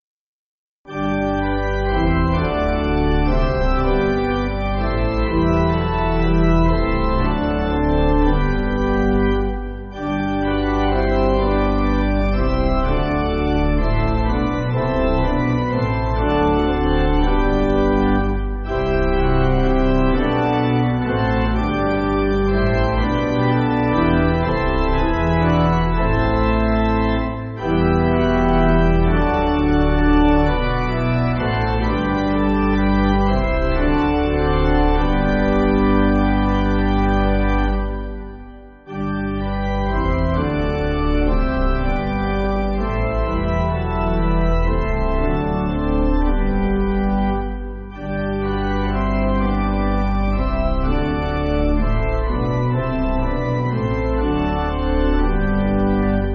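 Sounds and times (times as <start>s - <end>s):
pipe organ backing music: 0.9s - 56.3s.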